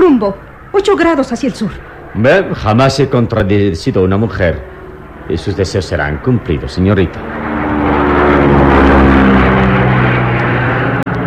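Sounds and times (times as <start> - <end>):
light propeller plane banking into a turn: 0.0 - 11.2
speech: 0.2 - 7.5.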